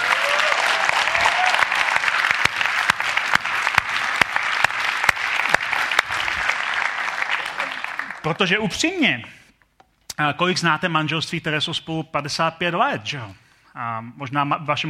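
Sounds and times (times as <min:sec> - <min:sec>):
crowd clapping: 0:00.0 - 0:08.6
speech: 0:08.3 - 0:09.4, 0:10.2 - 0:14.8.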